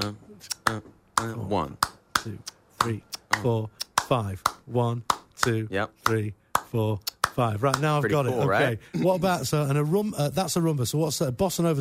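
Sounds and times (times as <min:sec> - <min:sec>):
speech: 0:00.0 - 0:11.7
hand claps in a 5/4 clave rhythm: 0:00.5 - 0:08.0.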